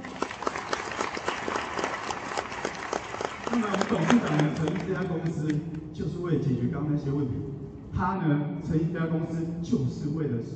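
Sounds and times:
applause: 0:00.0 - 0:05.6
speech: 0:03.6 - 0:10.5.

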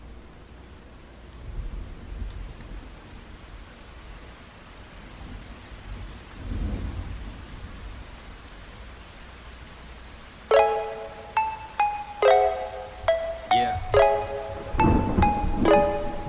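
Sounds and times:
rain in a song intro: 0:00.0 - 0:16.2
sustained musical notes: 0:10.5 - 0:16.2.

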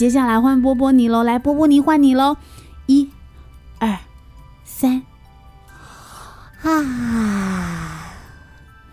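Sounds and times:
speech: 0:00.0 - 0:03.2, 0:03.8 - 0:04.1, 0:04.7 - 0:05.1, 0:06.6 - 0:08.0
child yawning: 0:06.6 - 0:08.3.

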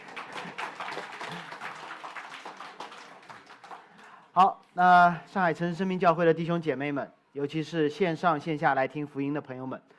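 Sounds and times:
audience applause: 0:00.0 - 0:04.3
speech: 0:04.4 - 0:09.9.

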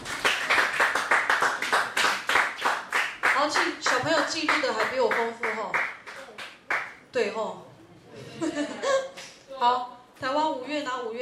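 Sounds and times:
group applause: 0:00.0 - 0:07.0
speech: 0:03.5 - 0:05.8, 0:07.1 - 0:07.6, 0:09.6 - 0:11.2
laughter: 0:07.9 - 0:09.2.

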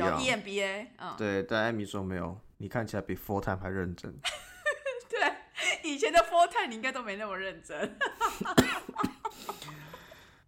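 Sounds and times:
speech: 0:00.1 - 0:04.4, 0:05.2 - 0:09.5
harsh coughing: 0:08.2 - 0:10.0.

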